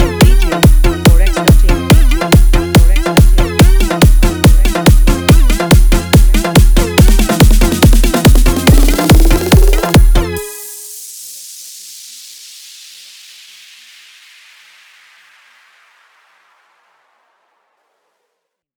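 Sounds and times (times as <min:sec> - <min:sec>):
DJ competition electronic beat with hard vibration: 0:00.0 - 0:13.4.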